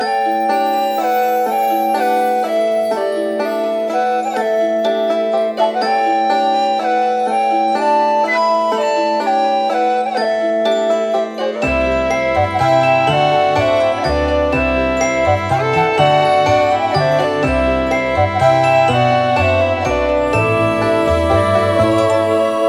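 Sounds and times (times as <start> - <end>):
snowy village loop: 0.0 - 22.6.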